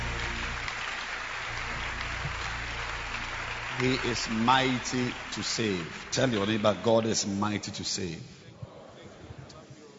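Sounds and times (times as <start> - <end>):
low hum: 0.0 - 5.2
crowd clapping: 0.0 - 7.8
speech: 3.8 - 8.4.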